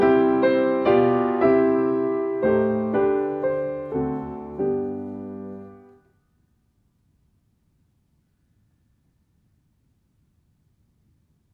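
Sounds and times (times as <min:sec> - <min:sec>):
solo piano: 0:00.0 - 0:06.1.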